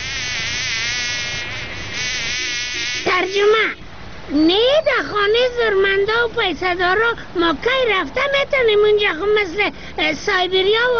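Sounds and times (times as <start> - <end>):
fly buzzing: 0.0 - 3.7
speech: 3.2 - 10.9.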